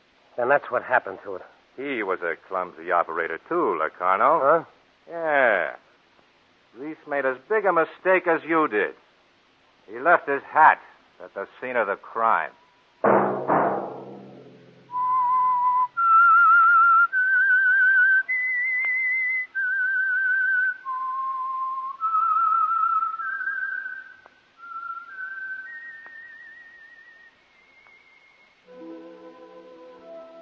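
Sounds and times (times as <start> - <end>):
speech: 0.4 - 5.8, 6.8 - 9.0, 9.9 - 13.4
person whistling a theme tune: 14.9 - 29.0.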